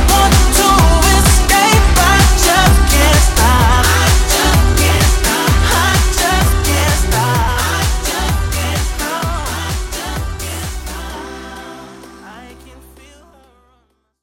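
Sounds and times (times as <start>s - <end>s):
drum beat: 0.0s - 11.2s.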